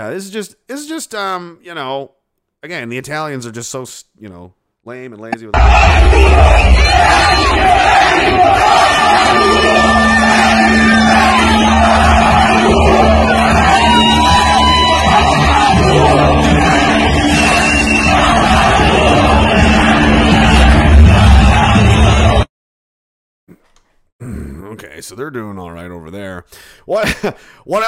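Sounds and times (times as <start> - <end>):
speech: 0.0 - 14.4, 24.2 - 27.8
crowd shouting at a street protest: 5.6 - 22.5.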